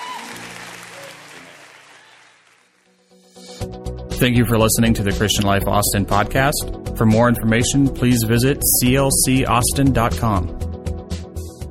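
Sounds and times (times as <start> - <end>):
audience clapping: 0.0 - 3.2
speech: 3.6 - 10.7.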